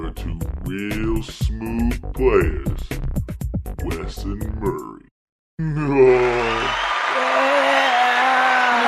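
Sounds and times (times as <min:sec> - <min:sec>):
speech: 0:00.1 - 0:03.0, 0:04.0 - 0:04.9
crowd applause: 0:05.9 - 0:08.8.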